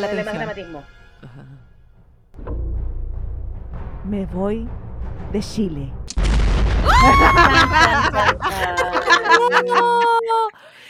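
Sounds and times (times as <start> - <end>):
speech: 0.0 - 1.7, 4.0 - 10.6
laughter: 1.2 - 1.6, 6.8 - 10.6
dramatic soap-opera sting sound effect: 1.8 - 6.6.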